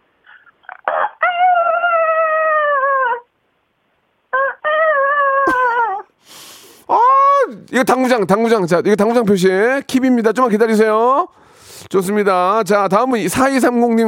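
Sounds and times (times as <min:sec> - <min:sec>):
voice imitating rooster crowing: 0:00.3 - 0:03.3, 0:04.3 - 0:06.1
speech: 0:07.7 - 0:14.0.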